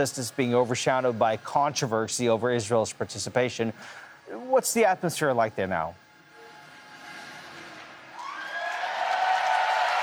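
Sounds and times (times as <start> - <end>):
speech: 0.0 - 6.0
audience applause and cheering at the first Eurovision semi-final in Vienna: 7.2 - 10.0.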